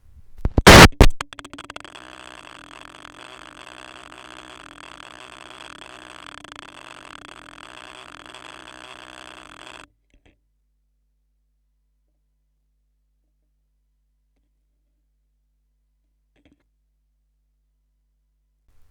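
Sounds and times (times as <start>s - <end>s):
vinyl record noise: 0.4s - 9.9s.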